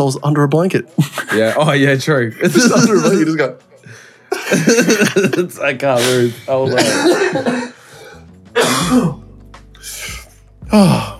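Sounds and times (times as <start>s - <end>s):
speech: 0.0s - 7.7s, 8.6s - 9.2s, 10.7s - 11.1s
laughter: 2.4s - 3.5s, 4.3s - 7.9s
cough: 4.5s - 5.4s, 6.1s - 7.8s, 8.6s - 9.2s.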